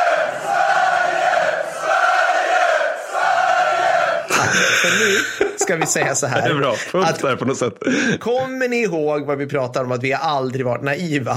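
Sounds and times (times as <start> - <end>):
supporters' cheering section chanting in unison: 0.0 - 4.6
laughter: 4.2 - 8.2
speech: 4.4 - 11.3.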